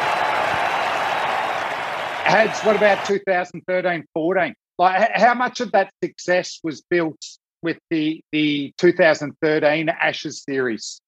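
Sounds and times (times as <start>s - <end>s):
cricket crowd cheering after winning runs: 0.0s - 3.2s
speech: 2.3s - 11.0s.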